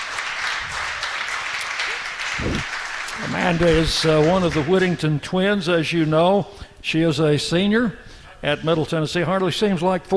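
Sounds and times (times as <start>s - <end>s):
audience applause at the Boulevard Bar and Grill welcoming a guest: 0.0s - 5.1s
speech: 3.2s - 10.1s.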